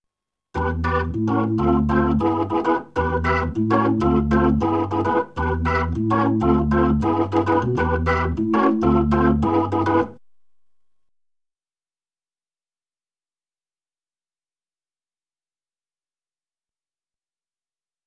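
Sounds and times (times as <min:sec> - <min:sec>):
Hammond B3 organ: 0:00.6 - 0:10.2.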